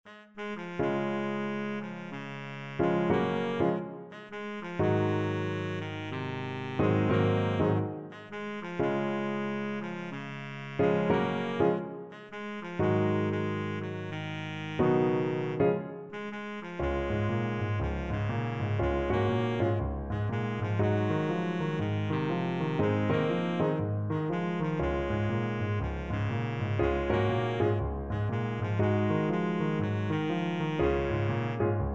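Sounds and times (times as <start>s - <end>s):
baritone saxophone: 0.0s - 31.8s.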